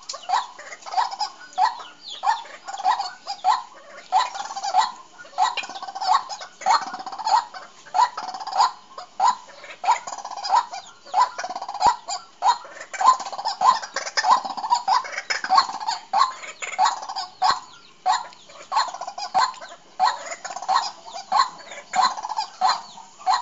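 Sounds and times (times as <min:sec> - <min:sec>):
bird calling in harsh clucking bursts: 0:00.0 - 0:23.3.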